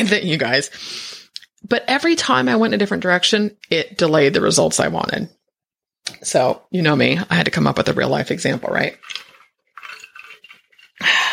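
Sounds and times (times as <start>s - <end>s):
speech: 0.0s - 5.4s, 6.0s - 9.2s, 11.0s - 11.3s
person drinking water from a flask: 9.0s - 11.3s.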